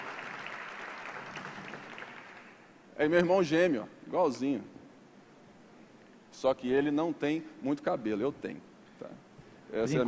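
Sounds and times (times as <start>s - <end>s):
audience applause: 0.0s - 2.6s
speech: 3.0s - 4.8s, 6.4s - 10.0s.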